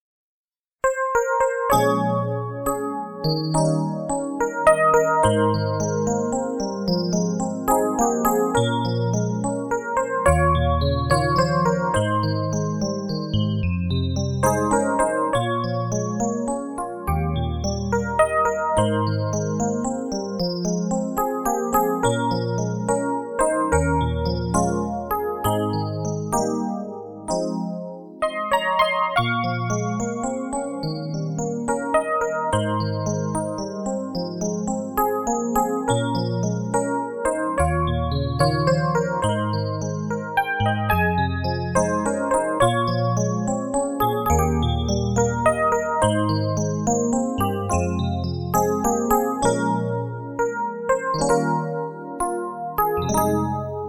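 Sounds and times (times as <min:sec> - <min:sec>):
music: 0:00.8 - 0:53.8.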